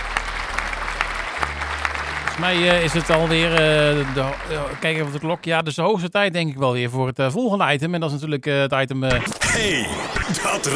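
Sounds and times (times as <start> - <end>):
applause: 0.0 - 5.7
speech: 2.4 - 10.7.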